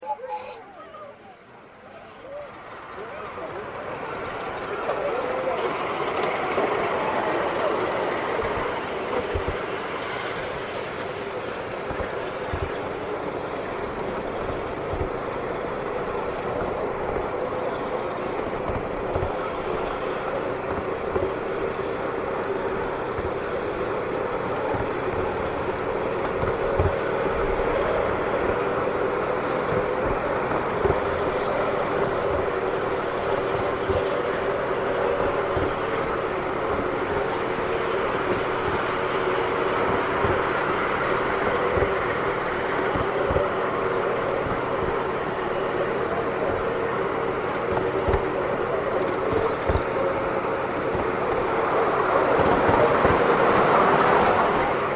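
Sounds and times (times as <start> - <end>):
long train whistle: 0.0 - 1.1
model railway steam train running: 0.0 - 54.9.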